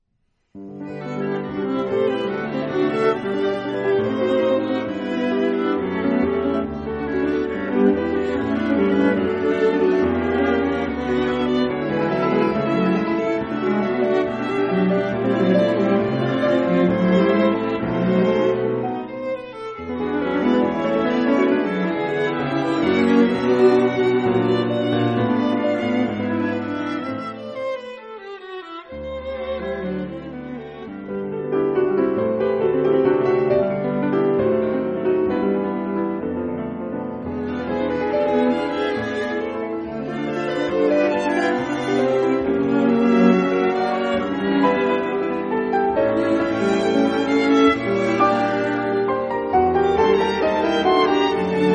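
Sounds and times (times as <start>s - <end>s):
piano quartet: 0.5s - 51.7s.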